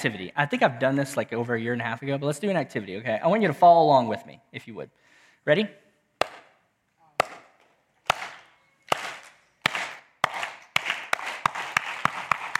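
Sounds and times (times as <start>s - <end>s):
speech: 0.0s - 5.8s
audience slow clap: 8.2s - 12.5s.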